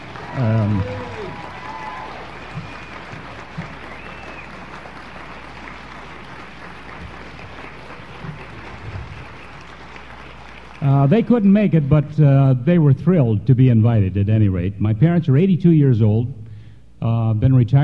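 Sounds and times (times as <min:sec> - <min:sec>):
audience applause: 0:00.0 - 0:11.4
speech: 0:00.4 - 0:01.1, 0:11.0 - 0:16.4, 0:17.0 - 0:17.8.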